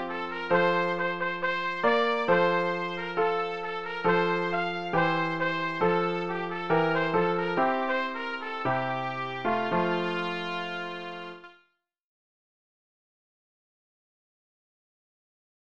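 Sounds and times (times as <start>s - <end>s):
clarinet: 0.0s - 11.7s.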